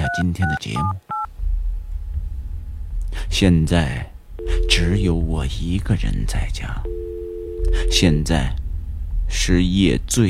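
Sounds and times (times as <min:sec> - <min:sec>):
speech: 0:00.1 - 0:01.2, 0:03.1 - 0:08.6, 0:09.3 - 0:10.2
telephone number being dialed: 0:06.9 - 0:08.0.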